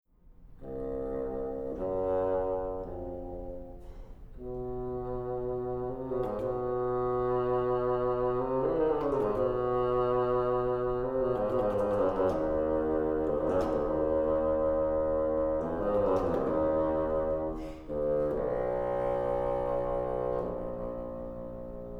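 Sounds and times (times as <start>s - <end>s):
bassoon sonata: 0.6s - 21.9s.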